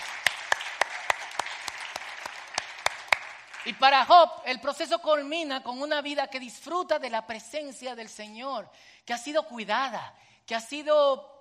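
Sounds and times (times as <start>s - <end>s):
audience applauding loudly: 0.0s - 4.0s
speech: 3.6s - 11.3s.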